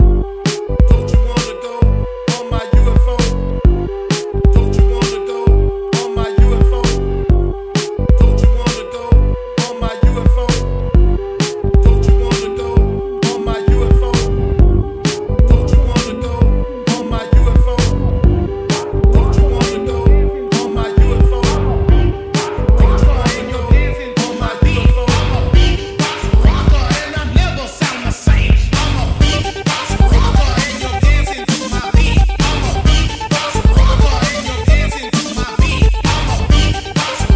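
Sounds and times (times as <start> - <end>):
music loop: 0.0 - 37.3.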